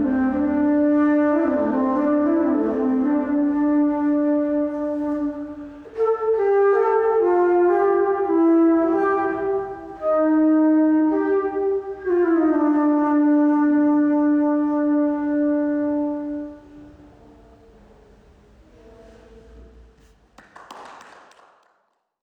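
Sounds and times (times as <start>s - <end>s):
alto flute improvisation: 0.0s - 17.2s.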